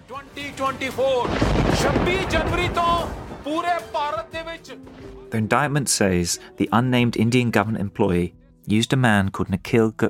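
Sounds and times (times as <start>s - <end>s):
speech: 0.1s - 10.0s
thunder: 1.2s - 3.6s.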